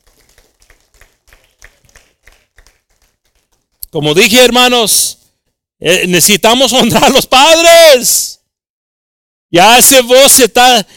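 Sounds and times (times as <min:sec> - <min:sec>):
audience applause for the fathers: 0:00.0 - 0:03.8
speech: 0:03.9 - 0:05.2, 0:05.8 - 0:08.3, 0:09.5 - 0:10.9.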